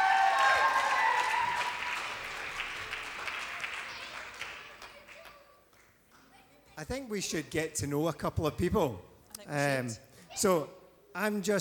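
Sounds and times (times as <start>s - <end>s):
shrill high-pitched voices cheering: 0.0s - 4.6s
audience applause: 0.0s - 5.4s
speech: 6.8s - 11.5s.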